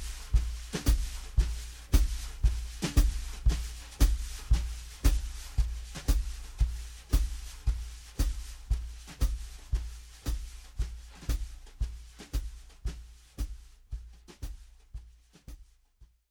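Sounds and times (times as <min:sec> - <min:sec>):
full jazz mix: 0:00.0 - 0:12.6.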